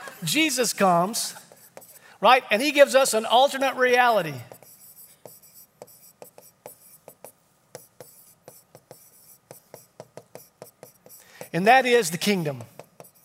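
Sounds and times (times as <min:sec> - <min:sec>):
speech: 0:00.2 - 0:01.4, 0:02.2 - 0:04.6, 0:11.6 - 0:12.8
drawing on a board: 0:01.4 - 0:02.1, 0:04.4 - 0:13.2.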